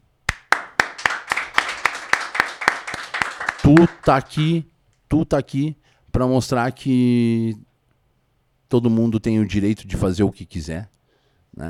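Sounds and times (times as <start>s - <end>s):
audience applause: 0.3s - 4.3s
speech: 3.7s - 7.7s, 8.7s - 10.9s.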